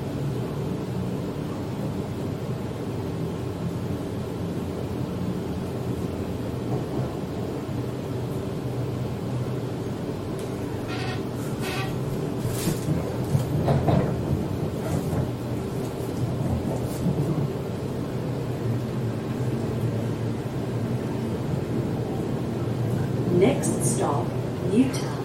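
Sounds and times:
Sydney train rumbling toward the city: 0.0s - 25.2s
brief sharp clatters and squeals: 10.8s - 13.5s.

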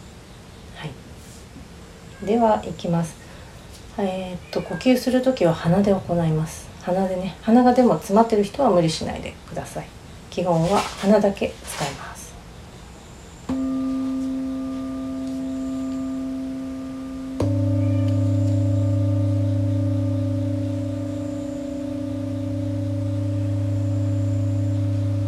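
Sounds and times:
speech: 2.2s - 3.2s, 4.0s - 12.0s
deeper low drone: 13.5s - 25.2s
meditation bowl struck and ringing: 13.5s - 25.2s.

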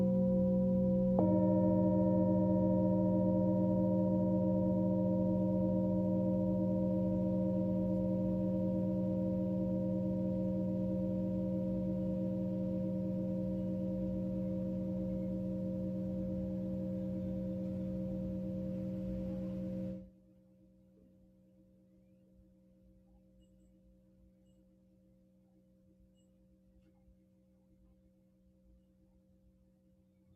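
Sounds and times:
singing bowl ringing in sound healing: 0.0s - 20.1s
faint low hum: 0.0s - 30.3s.

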